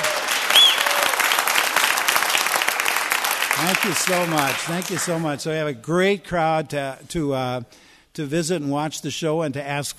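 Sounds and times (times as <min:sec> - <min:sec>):
audience clapping: 0:00.0 - 0:05.4
high whistle: 0:00.5 - 0:01.1
speech: 0:03.6 - 0:09.9.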